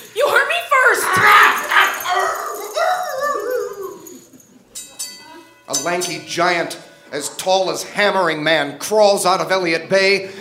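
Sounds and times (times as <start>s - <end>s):
dog attacking and barking: 0.7s - 4.3s
speech: 5.8s - 10.4s.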